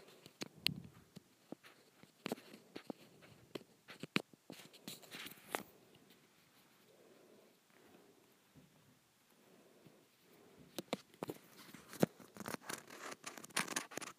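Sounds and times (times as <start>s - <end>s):
textured plastic being scratched: 0.0s - 5.7s, 10.7s - 14.1s
faint rubbing: 0.0s - 14.1s.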